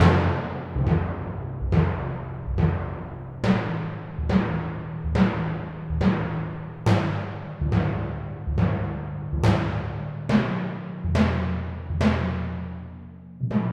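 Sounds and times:
timpani: 0:00.0 - 0:13.7.

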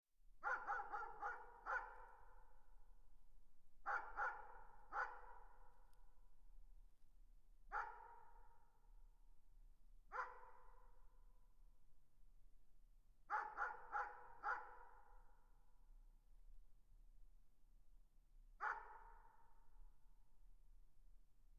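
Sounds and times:
dog giving sharp clipped barks: 0:00.4 - 0:02.2, 0:03.9 - 0:05.6, 0:07.7 - 0:08.5, 0:10.1 - 0:10.8, 0:13.3 - 0:15.1, 0:18.6 - 0:19.3.

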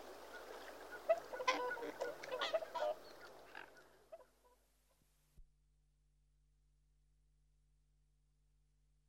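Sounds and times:
geese honking: 0:00.2 - 0:04.6.

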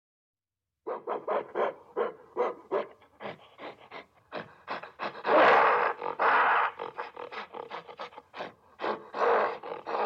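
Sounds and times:
gorilla panting calls: 0:03.0 - 0:10.0.

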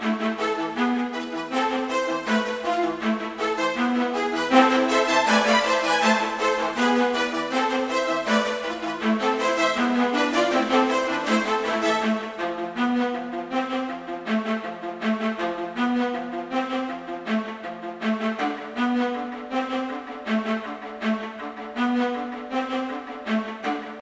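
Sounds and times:
viola: 0:00.0 - 0:23.9.

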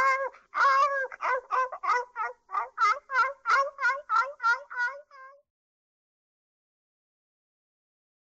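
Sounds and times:
dog giving high-pitched yelps and short barks: 0:00.0 - 0:05.3.

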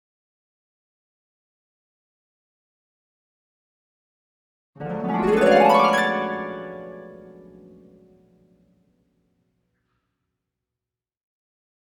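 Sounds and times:
harp: 0:04.8 - 0:08.5.

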